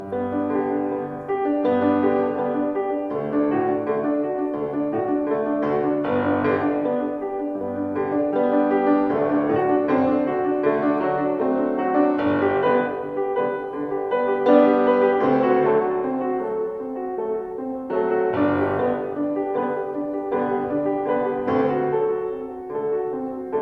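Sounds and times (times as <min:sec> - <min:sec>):
piano accompaniment: 0:00.0 - 0:23.6.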